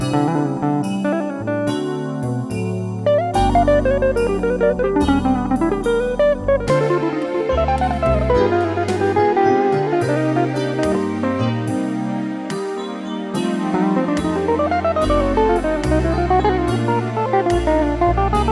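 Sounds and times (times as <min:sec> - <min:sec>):
backing track: 0:00.0 - 0:18.5
guitar: 0:00.0 - 0:18.5.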